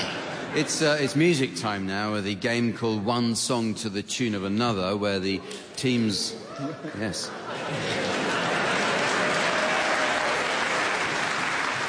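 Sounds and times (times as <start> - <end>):
speech: 0.5 - 8.2
laughter: 6.4 - 9.8
audience applause: 7.6 - 11.8.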